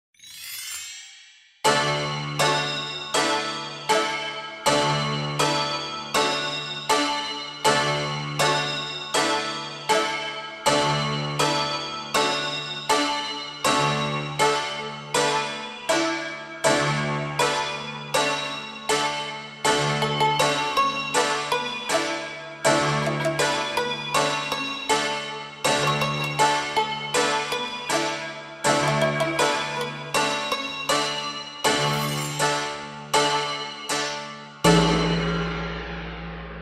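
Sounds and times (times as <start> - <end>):
musical accompaniment only: 1.7 - 36.6.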